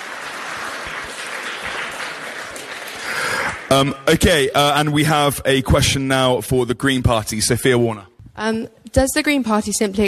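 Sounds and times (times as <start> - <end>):
sustained audience applause: 0.0 - 4.4
speech: 3.7 - 10.0.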